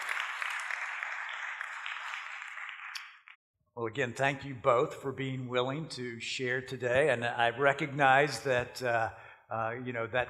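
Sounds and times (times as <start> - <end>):
audience applause welcoming two guests onto the stage: 0.0 - 3.2
speech: 3.8 - 10.2.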